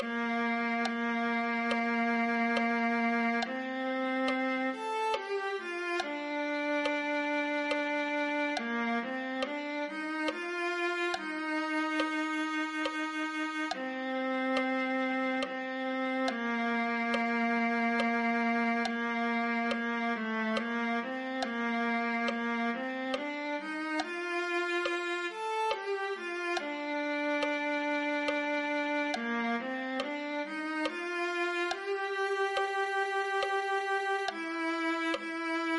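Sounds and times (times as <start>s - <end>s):
viola: 0.0s - 35.7s.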